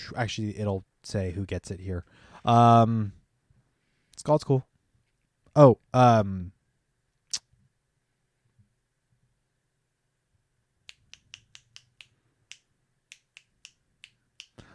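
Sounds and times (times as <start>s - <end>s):
speech: 0.1s - 3.2s, 4.2s - 4.7s, 5.6s - 6.6s
dramatic finger snaps: 10.8s - 14.7s.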